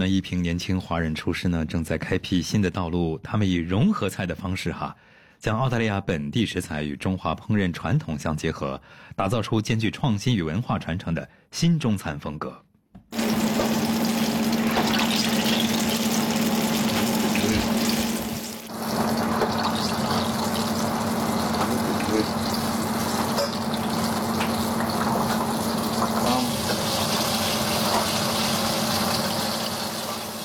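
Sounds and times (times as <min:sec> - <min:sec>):
speech: 0:00.0 - 0:12.7
eggplant strips deep-frying in hot oil at Lee Ho Fook in Melbourne: 0:13.1 - 0:30.4.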